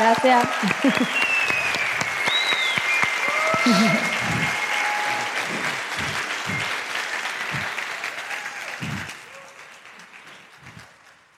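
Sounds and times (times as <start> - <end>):
audience clapping: 0.0 - 11.3
speech: 0.1 - 1.4, 3.7 - 4.0
laughter: 0.3 - 2.0, 3.3 - 9.2
whistle: 0.9 - 5.3, 6.0 - 6.8
people shouting: 3.2 - 6.6.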